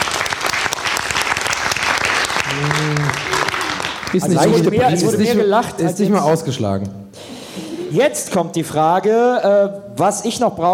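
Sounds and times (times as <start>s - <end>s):
audience applause: 0.0s - 5.1s
speech: 4.1s - 7.0s, 7.9s - 10.7s.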